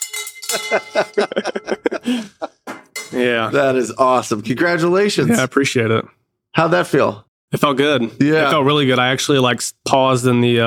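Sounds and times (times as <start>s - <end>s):
victory bell being rung: 0.0s - 1.8s
laughter: 0.5s - 2.6s
speech: 0.5s - 10.6s.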